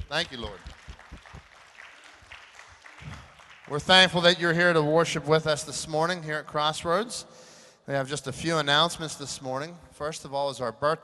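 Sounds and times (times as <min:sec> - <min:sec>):
audience clapping: 0:00.0 - 0:04.4
speech: 0:00.1 - 0:00.8, 0:03.7 - 0:11.0.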